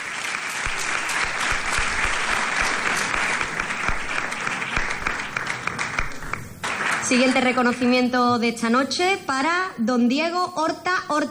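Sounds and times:
crowd applause: 0.0 - 7.7
speech: 7.1 - 11.2.

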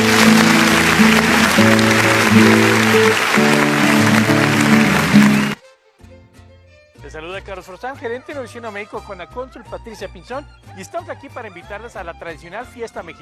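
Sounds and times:
audience applause: 0.0 - 5.6
speech: 7.4 - 13.2.

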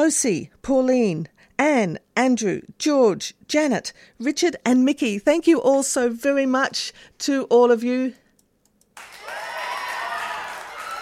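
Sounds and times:
speech: 0.0 - 8.2
applause: 9.0 - 10.9.

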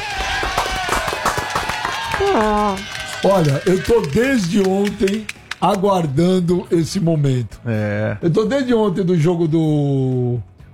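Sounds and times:
round of applause: 0.0 - 6.0
speech: 2.2 - 10.7.

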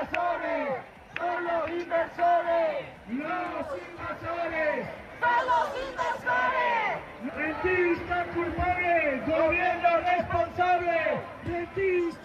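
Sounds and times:
protest crowd shouting and chanting: 0.0 - 12.2.

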